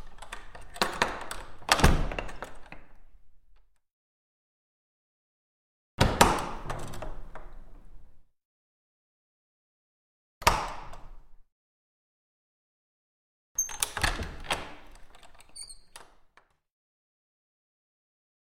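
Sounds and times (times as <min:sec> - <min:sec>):
wooden vestry door with lock: 0:00.0 - 0:03.8, 0:06.0 - 0:08.0, 0:10.4 - 0:11.3, 0:13.6 - 0:16.6.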